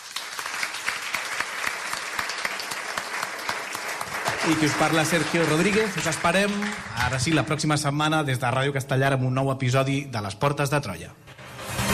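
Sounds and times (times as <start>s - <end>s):
live audience applause: 0.0s - 7.8s
speech: 4.4s - 11.3s.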